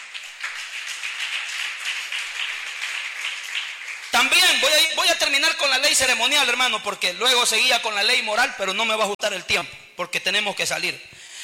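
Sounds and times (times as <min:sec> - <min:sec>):
audience applauding: 0:00.0 - 0:05.1
speech: 0:04.2 - 0:11.2.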